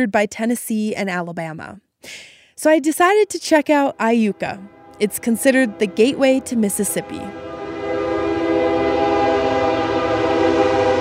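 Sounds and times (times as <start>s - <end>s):
speech: 0.0s - 7.5s
train horn: 3.4s - 10.9s.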